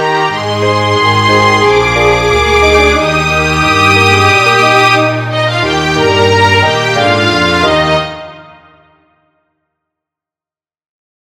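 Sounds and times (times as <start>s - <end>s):
violin playing a shanty: 0.0s - 8.7s.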